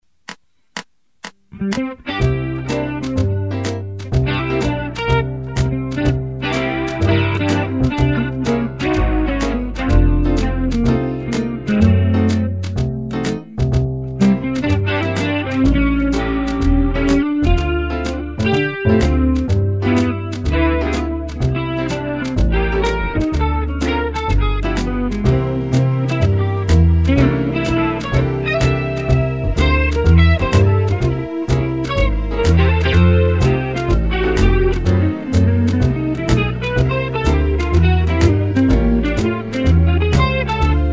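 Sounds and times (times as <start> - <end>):
blues music: 0.0 - 40.9.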